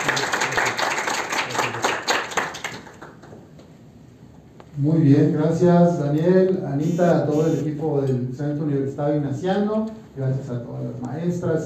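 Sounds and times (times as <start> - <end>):
audience applause: 0.0 - 3.2
speech: 4.8 - 11.6.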